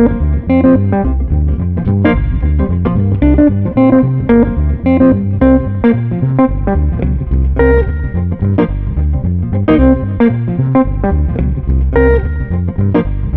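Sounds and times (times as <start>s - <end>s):
swinging bass: 0.0s - 13.3s
swinging street guitar: 0.0s - 13.3s.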